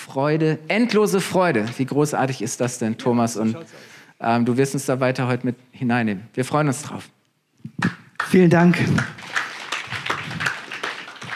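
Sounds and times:
speech: 0:00.1 - 0:09.3
audience applause: 0:08.2 - 0:11.3.

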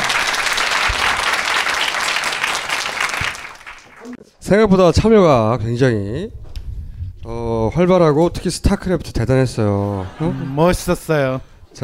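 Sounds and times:
audience applause: 0:00.0 - 0:04.2
speech: 0:04.5 - 0:06.4, 0:07.2 - 0:11.8
laughter: 0:09.7 - 0:11.4.

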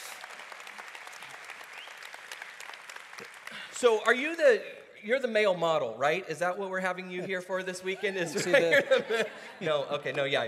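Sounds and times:
audience applause welcoming a guest: 0:00.0 - 0:04.5
speech: 0:03.2 - 0:10.4
laughter: 0:07.2 - 0:10.4.

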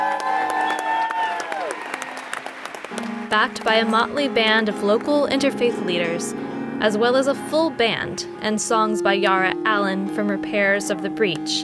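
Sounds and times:
whoops and raised voices: 0:00.0 - 0:01.9
crowd clapping and cheering: 0:00.0 - 0:05.4
speech: 0:03.0 - 0:11.6.

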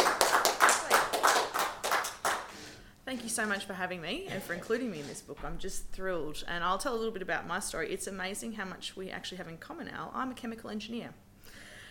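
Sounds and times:
audience round of applause: 0:00.0 - 0:02.7
speech: 0:03.1 - 0:11.2.

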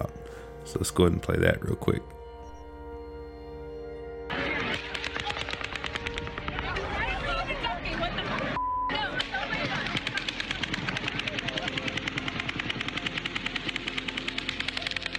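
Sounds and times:
voices murmuring: 0:00.0 - 0:02.5, 0:03.8 - 0:15.1
speech: 0:00.7 - 0:02.2
laughter: 0:06.4 - 0:12.6
two guns firing automatic bursts: 0:09.7 - 0:15.1.

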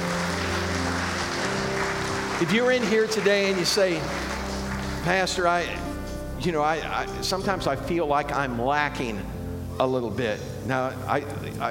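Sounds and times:
crowd clapping: 0:00.0 - 0:06.0
speech: 0:02.4 - 0:04.3, 0:05.0 - 0:05.8, 0:06.4 - 0:11.6.

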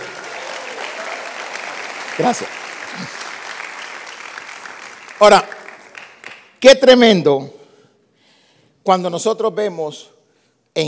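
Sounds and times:
audience applause: 0:00.0 - 0:06.6
speech: 0:02.2 - 0:03.2, 0:05.2 - 0:05.5, 0:06.6 - 0:07.6, 0:08.8 - 0:10.2.

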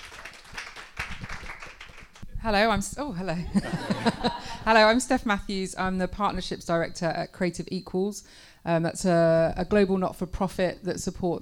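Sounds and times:
audience applause: 0:00.0 - 0:02.2
speech: 0:02.4 - 0:11.4
laughter: 0:03.4 - 0:04.7.

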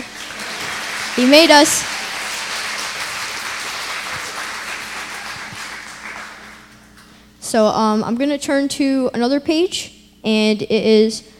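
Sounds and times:
audience applause: 0:00.0 - 0:06.9
speech: 0:01.2 - 0:02.0, 0:07.6 - 0:11.3.

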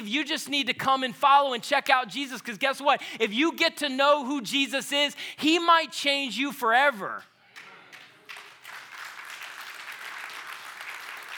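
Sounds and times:
speech: 0:00.1 - 0:07.3
audience clapping: 0:07.5 - 0:11.3.

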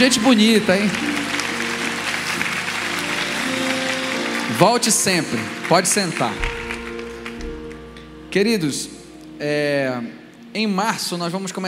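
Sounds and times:
speech: 0:00.0 - 0:01.1, 0:04.5 - 0:06.6, 0:08.4 - 0:11.6
audience applauding loudly: 0:00.0 - 0:08.1.

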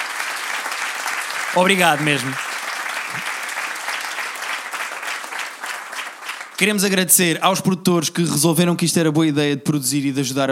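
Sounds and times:
audience applause: 0:00.0 - 0:07.0
speech: 0:01.5 - 0:02.4, 0:03.1 - 0:03.3, 0:06.6 - 0:10.5.

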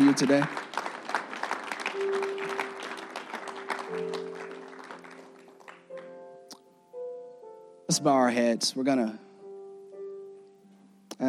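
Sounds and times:
audience hand clapping: 0:00.0 - 0:06.6
speech: 0:00.1 - 0:00.6, 0:07.9 - 0:09.3.

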